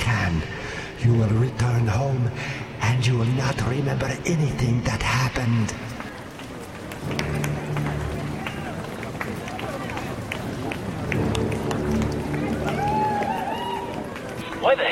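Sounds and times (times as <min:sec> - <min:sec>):
speech: 0:00.3 - 0:05.9, 0:07.0 - 0:07.5, 0:14.7 - 0:14.8
running footsteps of runners coming in: 0:04.0 - 0:14.8
crowd cheering and chattering: 0:05.4 - 0:14.8.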